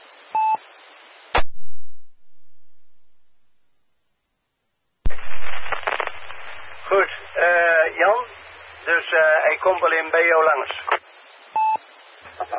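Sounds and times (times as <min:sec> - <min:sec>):
radio transmitter identification beep: 0:00.4 - 0:00.6, 0:05.1 - 0:07.6, 0:10.7 - 0:11.8
speech: 0:08.0 - 0:11.0.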